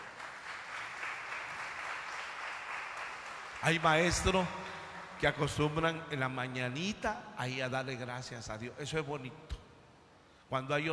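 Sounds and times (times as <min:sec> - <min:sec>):
audience applause: 0:00.0 - 0:05.2
speech: 0:03.6 - 0:04.6, 0:05.2 - 0:09.6, 0:10.5 - 0:10.9.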